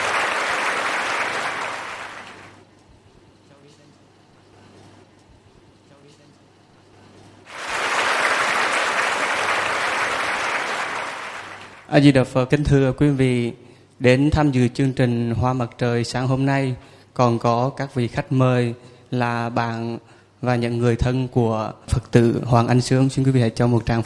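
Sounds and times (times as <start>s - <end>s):
audience clapping at a Buddhist-themed stage program: 0.0s - 2.6s, 7.5s - 11.9s
speech: 11.9s - 24.0s.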